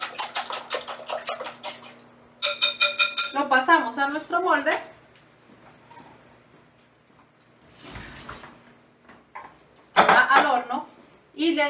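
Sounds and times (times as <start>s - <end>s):
whisk beating sifted flour into egg in a bowl: 0.0s - 3.4s
speech: 3.3s - 4.9s, 11.5s - 11.6s.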